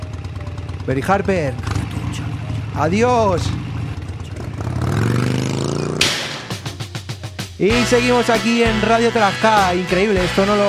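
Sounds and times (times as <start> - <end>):
motorcycle starting and revving: 0.0 - 7.3
speech: 0.8 - 1.7, 2.8 - 3.7, 7.6 - 10.6.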